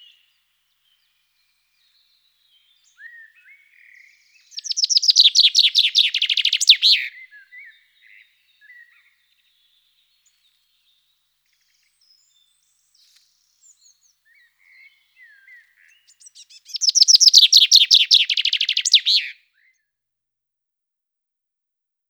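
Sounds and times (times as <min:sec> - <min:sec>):
common chaffinch singing: 0:02.9 - 0:07.2, 0:13.0 - 0:19.4.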